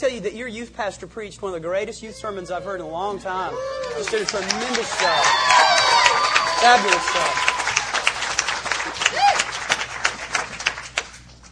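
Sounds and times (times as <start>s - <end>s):
speech: 0.0s - 5.6s, 6.6s - 7.6s
audience clapping: 3.7s - 11.5s.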